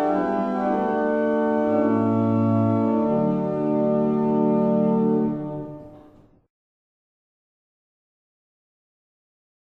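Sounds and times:
barrel organs: 0.0 - 6.0.

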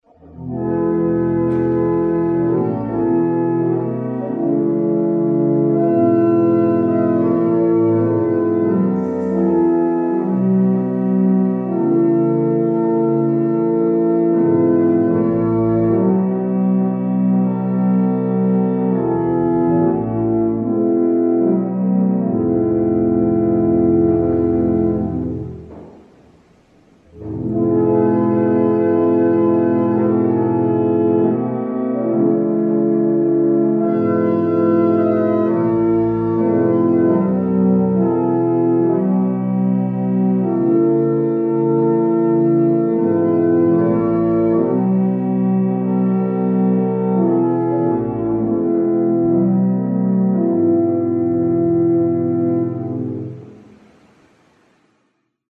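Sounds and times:
barrel organ playing a chant: 0.0 - 53.8.

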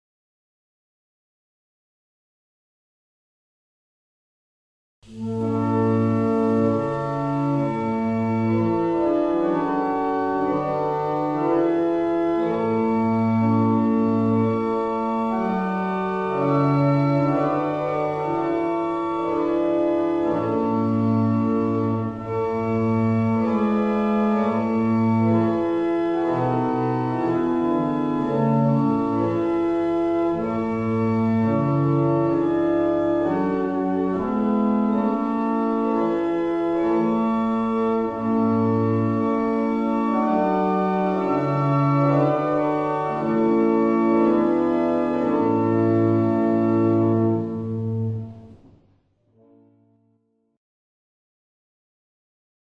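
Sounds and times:
barrel organ playing a hymn: 5.1 - 48.4.

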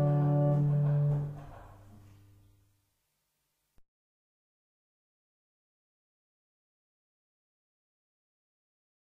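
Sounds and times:
barrel organs playing in Carlisle: 0.0 - 1.5.

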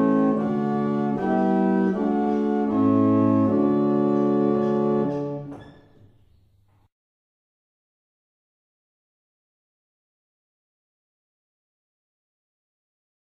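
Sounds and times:
barrel organ: 0.0 - 5.6.

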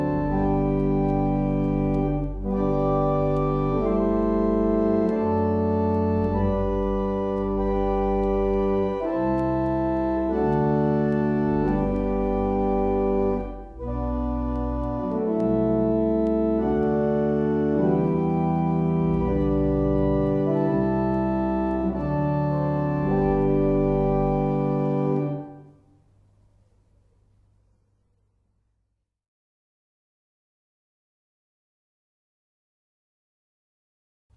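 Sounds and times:
barrel organs playing a hymn: 0.0 - 25.8.

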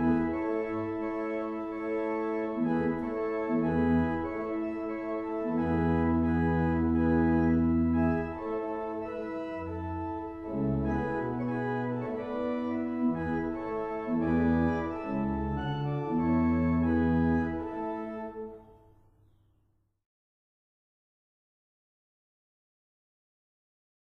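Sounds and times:
barrel organs: 0.0 - 18.7.

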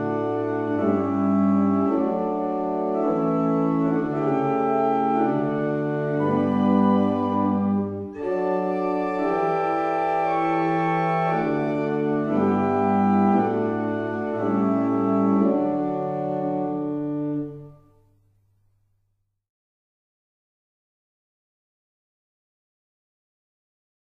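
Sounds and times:
barrel organs: 0.0 - 17.6.

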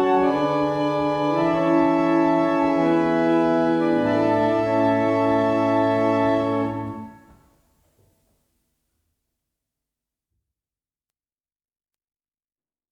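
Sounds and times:
barrel organs: 0.0 - 7.4.

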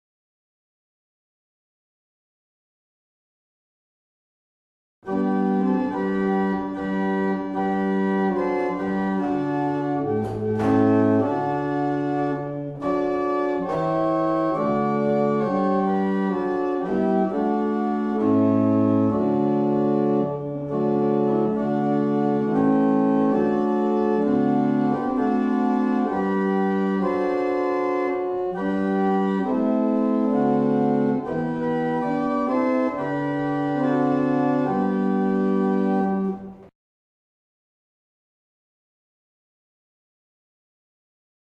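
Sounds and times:
barrel organs playing a morning hymn: 5.0 - 36.6.

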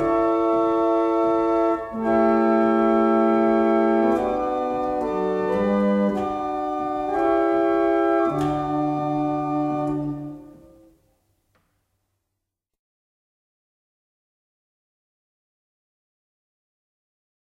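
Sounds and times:
barrel organ: 0.0 - 11.0.

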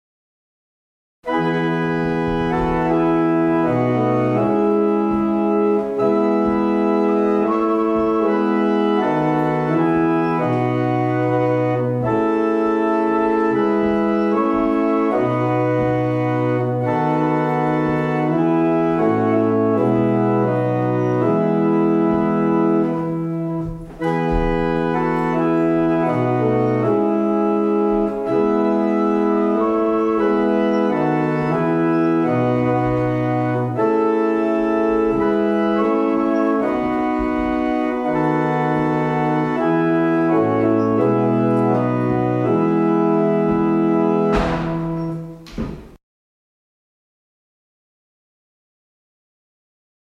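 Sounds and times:
barrel organ playing a double chant: 1.2 - 45.9.

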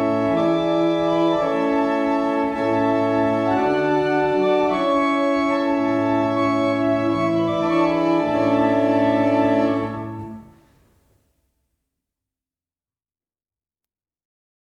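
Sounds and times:
barrel organs: 0.0 - 10.6.

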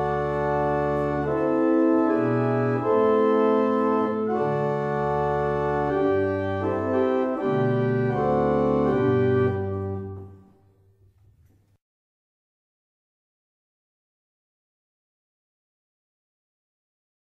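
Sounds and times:
barrel organ playing a double chant: 0.0 - 10.5.

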